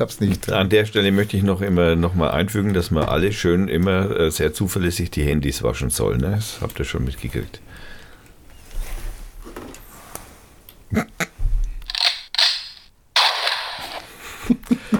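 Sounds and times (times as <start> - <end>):
speech: 0.0 - 7.9, 10.9 - 11.2
gunshots fired by the audience: 11.9 - 14.1.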